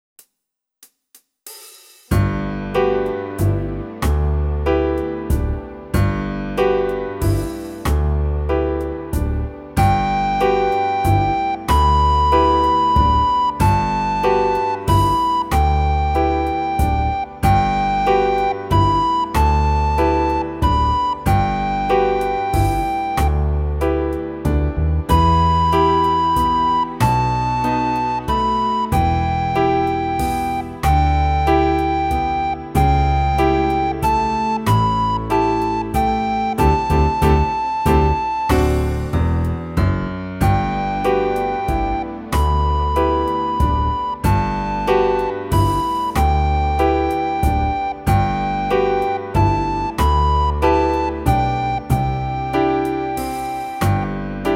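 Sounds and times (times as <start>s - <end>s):
waltz practice music: 2.2s - 54.5s.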